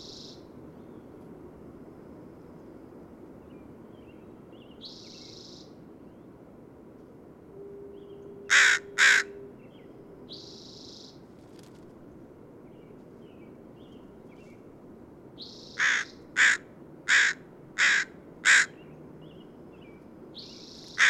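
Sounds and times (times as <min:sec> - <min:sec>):
bird harsh caws: 0:08.5 - 0:09.4, 0:15.7 - 0:18.8.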